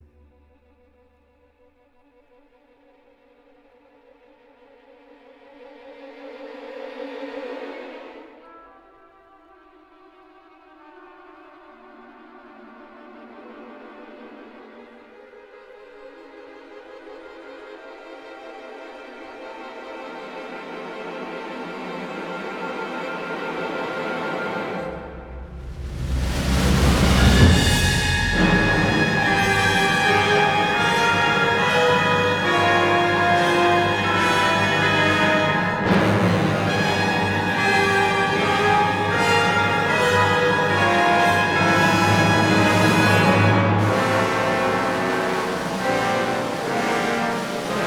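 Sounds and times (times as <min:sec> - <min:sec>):
orchestral concerto: 0:10.5 - 0:47.8.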